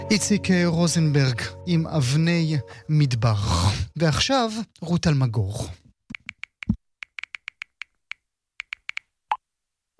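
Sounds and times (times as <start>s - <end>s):
speech: 0.1s - 5.8s
sharp clicks: 6.1s - 9.4s.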